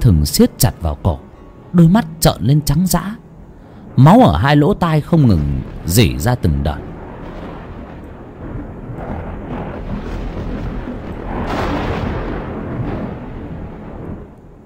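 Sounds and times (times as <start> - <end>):
speech: 0.0 - 3.2, 4.0 - 6.9
thunder crash: 3.3 - 14.6.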